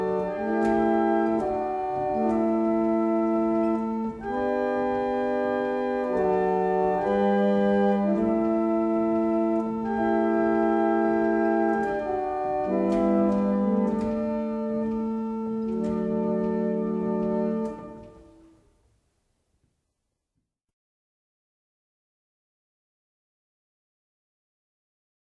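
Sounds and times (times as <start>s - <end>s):
barrel organs playing a double chant: 0.0s - 18.5s.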